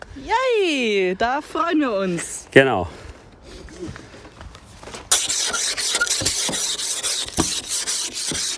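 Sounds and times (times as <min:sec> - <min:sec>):
speech: 0:00.2 - 0:03.0
ice scraper scraping ice off a frozen car window: 0:05.1 - 0:08.5.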